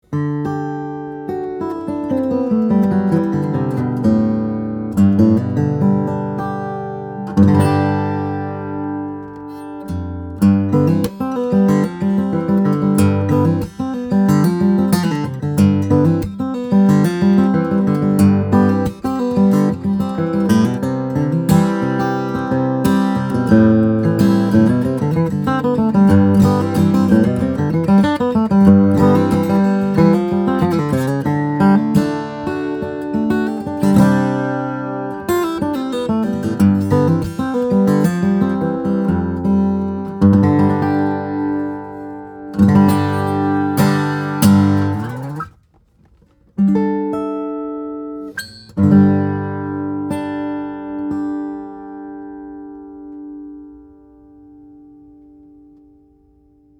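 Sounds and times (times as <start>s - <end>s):
guitars: 0.0s - 56.7s.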